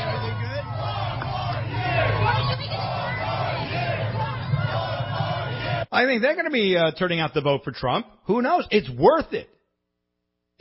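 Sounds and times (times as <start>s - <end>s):
crowd cheering outdoors: 0.0s - 5.9s
speech: 6.0s - 9.6s.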